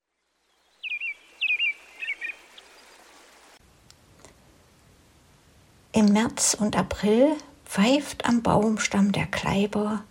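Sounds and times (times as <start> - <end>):
goldcrests calling from dense firs: 0.4 - 3.6
speech: 6.0 - 10.0.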